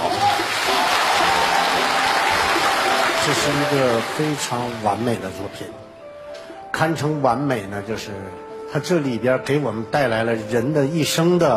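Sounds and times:
audience applause: 0.0 - 5.4
speech: 3.3 - 5.9, 6.8 - 11.5.

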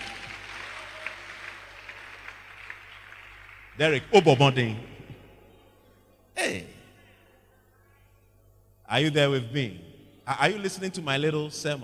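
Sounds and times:
hands clapping: 0.0 - 4.7
speech: 3.8 - 4.9, 8.9 - 11.8.

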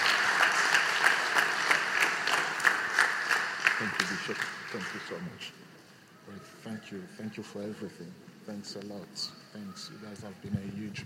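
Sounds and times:
audience applause: 0.0 - 5.4
speech: 3.8 - 5.7, 6.3 - 11.0.

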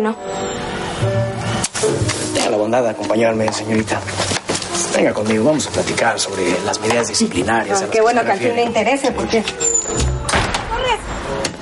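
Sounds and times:
speech: 0.0 - 10.1
short squeak: 9.6 - 11.3
door swinging shut: 9.9 - 10.8.

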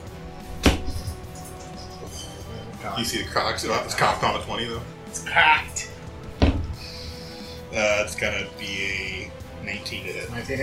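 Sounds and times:
speech: 2.8 - 5.9, 7.7 - 10.6
arrow loosed from a short bow whooshing and thudding: 6.4 - 6.8.

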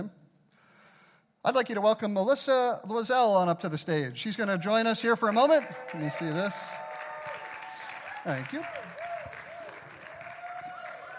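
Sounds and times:
speech: 1.4 - 6.8, 8.2 - 9.0
audience applause and cheering: 5.2 - 11.1.

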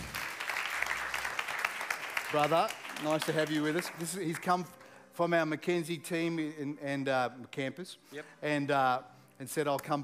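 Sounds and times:
crowd applauding: 0.0 - 4.7
speech: 2.3 - 10.0.

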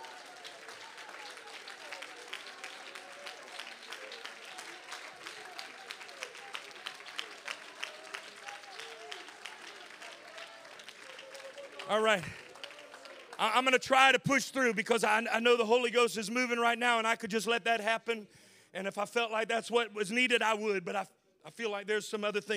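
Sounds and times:
audience hand clapping: 0.0 - 14.8
speech: 11.9 - 12.4, 13.4 - 22.5.

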